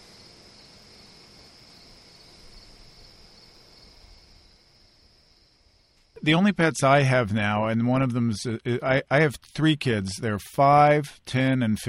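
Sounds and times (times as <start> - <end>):
crickets chirping at night: 0.0 - 6.4
wind outside: 0.0 - 11.8
speech: 6.2 - 11.8.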